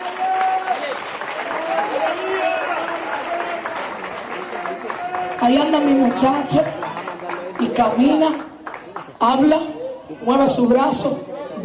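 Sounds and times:
audience applauding: 0.0s - 9.2s
speech: 5.4s - 6.8s, 7.7s - 11.2s.

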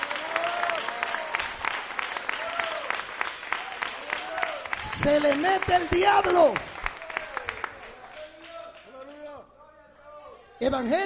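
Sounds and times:
audience applause: 0.0s - 8.8s
speech: 5.0s - 6.7s, 10.6s - 11.0s.

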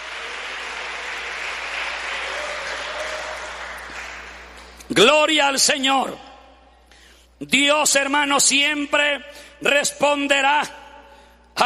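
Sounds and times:
audience applause: 0.0s - 4.8s
speech: 4.9s - 6.3s, 7.4s - 10.8s.

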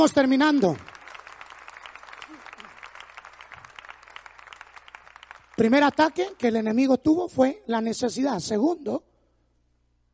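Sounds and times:
speech: 0.0s - 0.9s, 5.6s - 9.1s
audience applause: 0.4s - 6.5s.

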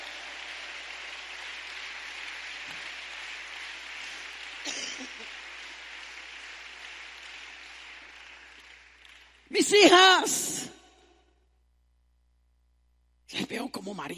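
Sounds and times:
audience applause: 0.0s - 9.7s
speech: 9.6s - 10.8s, 14.0s - 14.1s.

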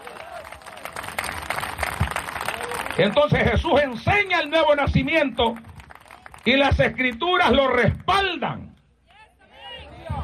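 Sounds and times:
audience applause: 0.0s - 7.1s
speech: 3.0s - 5.7s, 6.4s - 8.7s.

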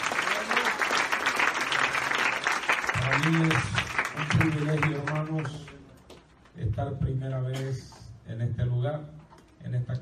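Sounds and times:
church congregation applauding during a service: 0.0s - 5.9s
speech: 3.2s - 5.7s, 6.6s - 10.0s.

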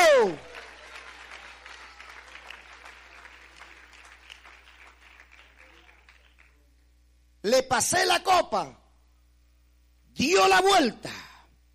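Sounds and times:
audience applauding: 0.0s - 6.6s
speech: 7.5s - 8.8s, 10.2s - 11.2s.

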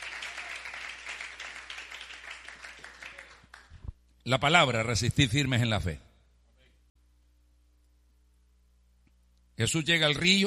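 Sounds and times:
audience applauding: 0.0s - 3.8s
speech: 4.2s - 6.0s, 9.6s - 10.4s.

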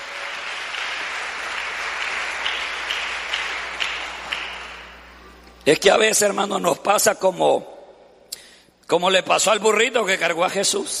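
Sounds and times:
audience applause: 0.0s - 5.2s
speech: 5.7s - 7.7s, 8.9s - 10.9s.

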